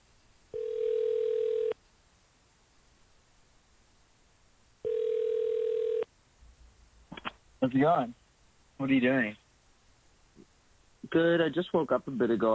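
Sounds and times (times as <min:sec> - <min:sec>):
telephone dial tone: 0:00.5 - 0:01.8, 0:04.8 - 0:06.1
speech: 0:07.6 - 0:08.2, 0:08.8 - 0:09.4, 0:11.1 - 0:12.5.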